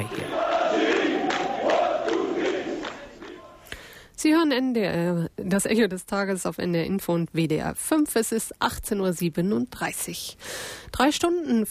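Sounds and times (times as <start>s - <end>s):
Algerian fans chanting battle cry: 0.0s - 3.7s
speech: 4.2s - 11.7s.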